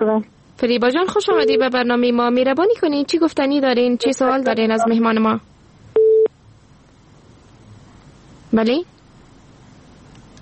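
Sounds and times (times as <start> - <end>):
speech: 0.0 - 5.5, 8.5 - 8.9
telephone busy tone after a caller's line is cut off: 1.3 - 1.7, 6.0 - 6.3.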